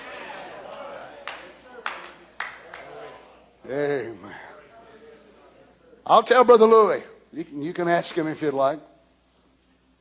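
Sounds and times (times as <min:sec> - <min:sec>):
group clapping hands in unison: 0:00.0 - 0:03.2
murmur of voices: 0:00.0 - 0:06.2
speech: 0:03.7 - 0:04.4, 0:06.1 - 0:08.9.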